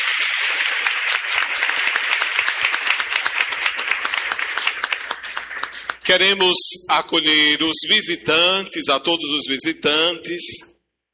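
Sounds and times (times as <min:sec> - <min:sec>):
crowd applauding: 0:00.0 - 0:06.3
speech: 0:00.2 - 0:01.6, 0:06.1 - 0:10.7.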